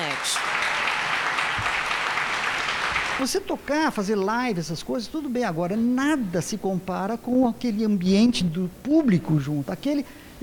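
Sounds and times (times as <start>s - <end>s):
live audience applause: 0.0s - 3.3s
speech: 3.2s - 10.4s.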